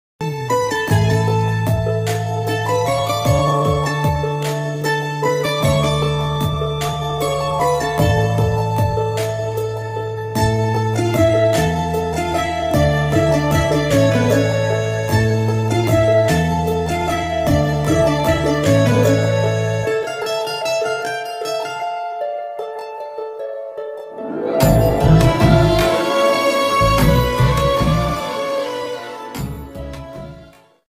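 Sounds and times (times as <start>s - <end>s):
Pakistani drama instrumental music: 0.2s - 22.1s, 22.8s - 30.8s.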